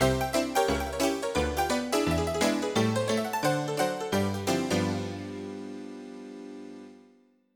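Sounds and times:
honky tonk music: 0:00.0 - 0:07.0.

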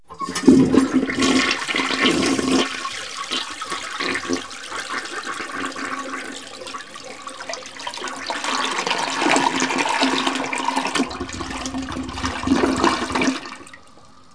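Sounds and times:
domestic toilet in bathroom: 0:00.0 - 0:14.3.

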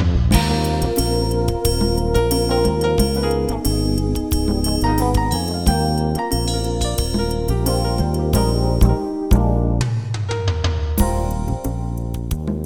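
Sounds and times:
pop rock music: 0:00.1 - 0:12.5.

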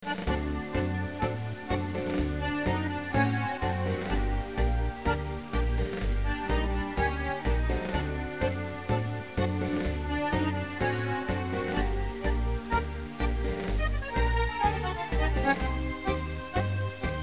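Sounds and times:
soundtrack music: 0:00.1 - 0:17.2.

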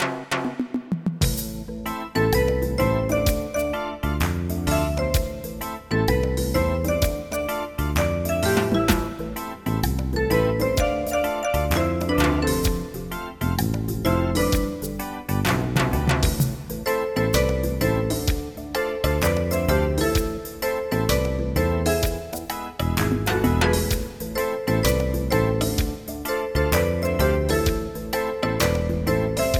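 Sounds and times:
reggae music: 0:00.0 - 0:29.5.

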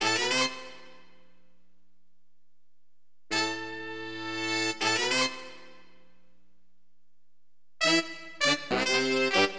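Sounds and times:
funk horn wind instrument: 0:00.0 - 0:01.1, 0:03.3 - 0:05.9, 0:07.8 - 0:09.5.

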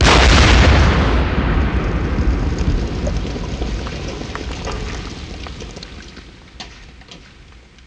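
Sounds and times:
explosion: 0:00.0 - 0:07.0.

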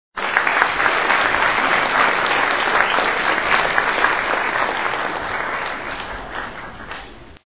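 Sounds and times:
applause: 0:00.2 - 0:07.4.

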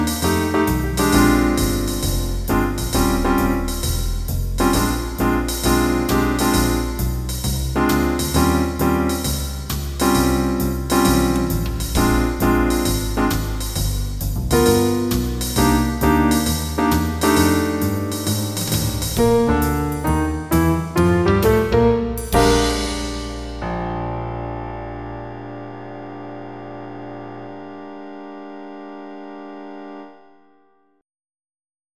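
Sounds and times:
blues in B flat: 0:00.0 - 0:25.4.

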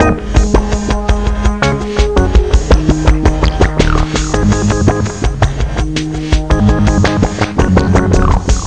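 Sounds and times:
808 bass: 0:00.0 - 0:08.6.

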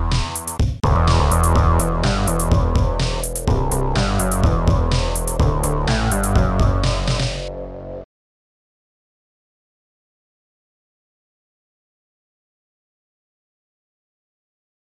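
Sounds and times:
music: 0:00.0 - 0:08.1.

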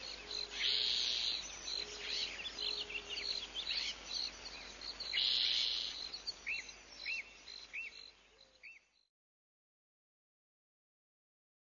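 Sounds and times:
meadow ambience: 0:00.0 - 0:09.1.

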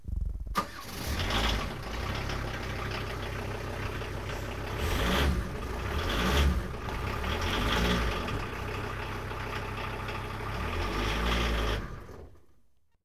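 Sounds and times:
car: 0:00.1 - 0:12.9.

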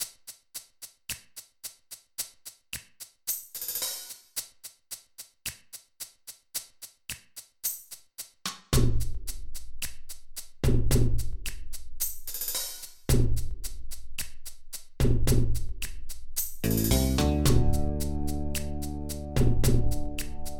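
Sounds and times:
rhythm: 0:00.0 - 0:20.5.

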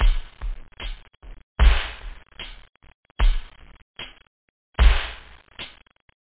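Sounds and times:
pop beat loop: 0:00.0 - 0:02.4.

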